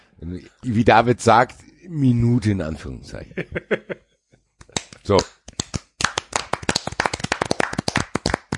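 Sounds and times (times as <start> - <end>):
speech: 0.2 - 4.1, 5.0 - 5.4
laughter: 3.2 - 4.1
people clapping hands: 4.6 - 8.5.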